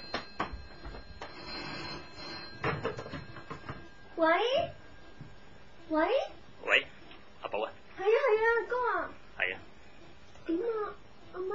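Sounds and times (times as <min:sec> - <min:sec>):
telephone ringing: 0:00.0 - 0:06.4
speech: 0:04.2 - 0:04.8, 0:05.9 - 0:06.9, 0:07.5 - 0:09.2.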